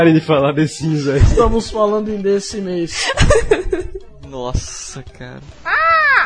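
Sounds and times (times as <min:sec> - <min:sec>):
speech: 0:00.1 - 0:06.0
jay cawing sound effect: 0:05.6 - 0:06.2.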